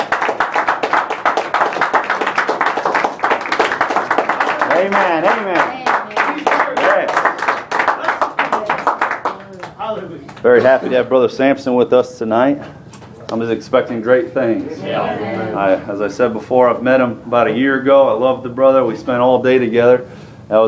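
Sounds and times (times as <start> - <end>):
audience hand clapping: 0.0 - 10.5
speech: 4.8 - 5.7, 10.4 - 20.6.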